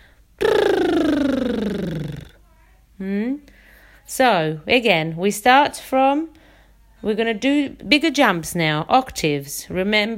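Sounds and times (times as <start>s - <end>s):
voiced lip trill vocal exercise: 0.4s - 2.4s
speech: 4.1s - 6.4s, 7.0s - 10.1s.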